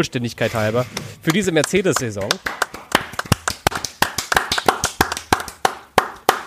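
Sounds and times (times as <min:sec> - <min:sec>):
speech: 0:00.0 - 0:02.6
four people clapping hands: 0:01.3 - 0:06.4.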